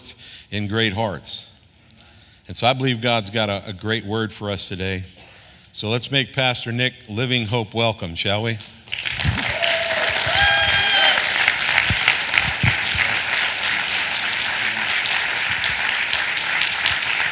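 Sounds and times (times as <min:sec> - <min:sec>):
speech: 0:00.5 - 0:01.5, 0:02.5 - 0:05.2, 0:05.8 - 0:08.8
audience applause: 0:08.9 - 0:17.3
whistles and cheers: 0:09.4 - 0:11.6.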